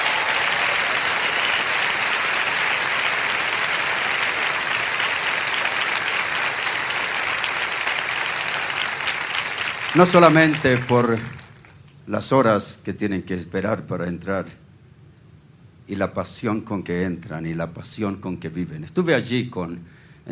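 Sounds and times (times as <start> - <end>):
sustained applause from a large audience: 0.0 - 11.8
speech: 10.0 - 11.4, 12.1 - 14.6, 15.9 - 20.3.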